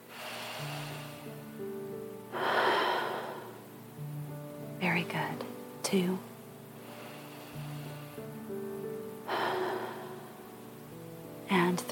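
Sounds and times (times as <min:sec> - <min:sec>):
deep breath during a guided breathing exercise: 0:00.0 - 0:01.4, 0:02.3 - 0:03.6, 0:06.8 - 0:08.3, 0:09.3 - 0:10.4
soft sustained music tones: 0:00.0 - 0:11.9
speech: 0:05.0 - 0:06.3.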